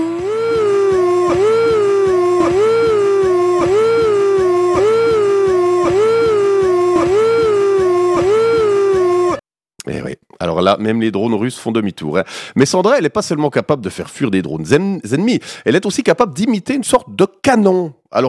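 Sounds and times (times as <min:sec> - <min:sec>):
loud air-raid siren wailing: 0:00.0 - 0:09.4
speech: 0:10.6 - 0:18.2.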